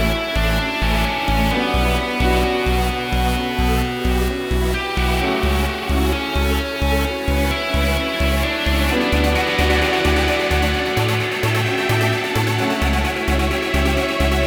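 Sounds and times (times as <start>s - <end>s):
electro rock song: 0.0s - 14.4s.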